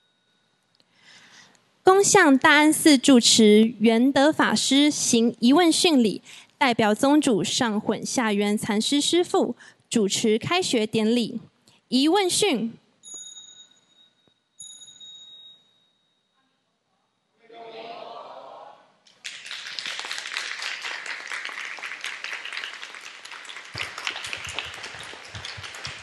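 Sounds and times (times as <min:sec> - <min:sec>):
speech: 0:02.0 - 0:12.8
audience applause: 0:19.1 - 0:26.0.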